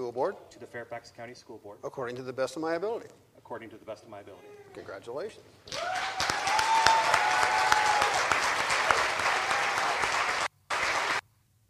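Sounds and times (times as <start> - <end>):
speech: 0.1 - 6.2
audience clapping after oath: 5.7 - 11.2.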